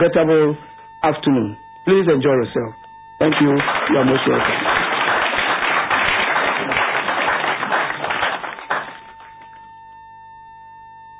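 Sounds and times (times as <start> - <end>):
speech: 0.0 - 4.7
audience applauding: 3.3 - 9.5.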